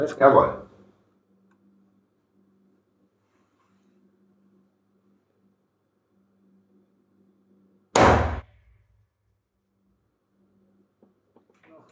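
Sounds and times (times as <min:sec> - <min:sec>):
speech: 0:00.0 - 0:00.7
.243 Winchester calibre rifle shot: 0:08.0 - 0:08.7.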